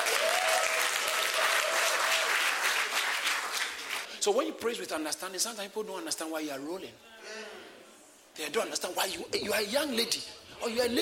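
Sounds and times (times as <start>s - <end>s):
audience clapping: 0.0s - 4.1s
speech: 4.2s - 7.5s, 8.4s - 11.0s.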